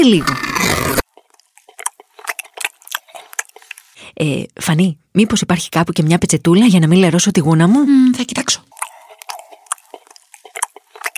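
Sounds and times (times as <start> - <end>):
speech: 0.0 - 1.0, 4.2 - 8.8
chewing sardines: 0.0 - 4.0, 8.1 - 11.1.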